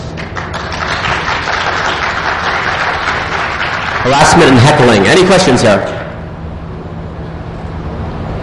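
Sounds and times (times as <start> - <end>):
audience applause: 0.2 - 5.0
speech: 4.0 - 6.0.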